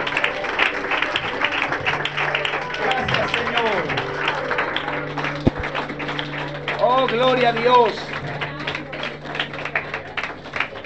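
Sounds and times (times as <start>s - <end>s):
applause from a church congregation during an evening service: 0.0s - 10.8s
speech: 7.0s - 8.1s.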